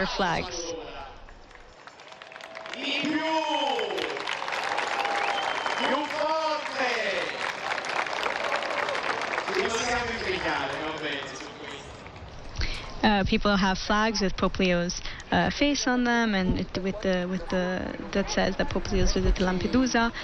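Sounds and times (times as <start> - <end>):
speech: 0.0 - 0.6, 9.9 - 11.5, 13.0 - 20.2
crowd cheering during papal visit to Lampedusa: 0.0 - 12.4.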